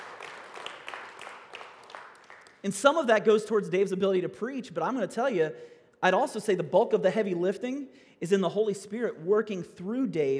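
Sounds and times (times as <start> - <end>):
scattered audience clapping: 0.0 - 2.9
speech: 2.6 - 10.3.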